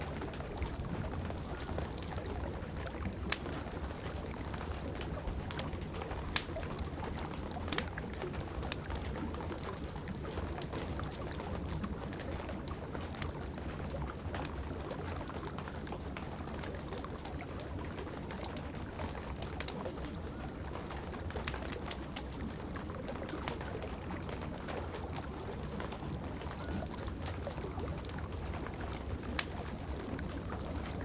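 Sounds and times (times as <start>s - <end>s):
rain falling steadily over a fireplace fire: 0.0s - 31.0s
burning wood crackling and popping in a fireplace: 0.2s - 4.2s, 5.1s - 10.7s, 18.4s - 20.4s, 21.1s - 24.6s, 29.0s - 31.0s.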